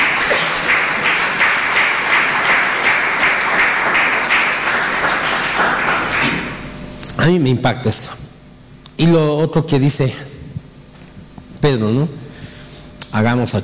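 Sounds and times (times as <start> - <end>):
applause: 0.0 - 6.6
speech: 7.2 - 8.2, 9.0 - 10.3, 11.6 - 12.2, 13.1 - 13.6.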